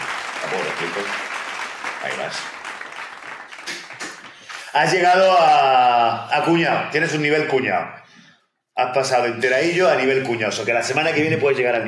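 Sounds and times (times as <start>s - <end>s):
short applause: 0.0s - 5.0s
speech: 0.5s - 1.3s, 2.0s - 2.6s, 4.7s - 8.0s, 8.8s - 11.8s.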